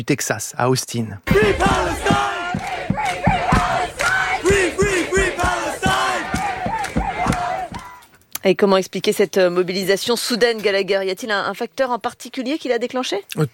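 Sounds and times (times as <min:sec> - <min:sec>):
speech: 0:00.0 - 0:03.4, 0:08.4 - 0:13.5
crowd chanting a slogan at the University of Texas at Austin: 0:01.2 - 0:08.0.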